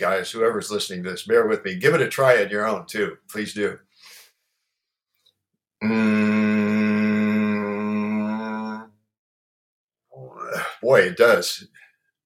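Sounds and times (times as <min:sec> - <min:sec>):
speech: 0:00.0 - 0:03.9, 0:05.8 - 0:06.9, 0:10.5 - 0:11.8
person humming with nose held closed: 0:05.8 - 0:08.9.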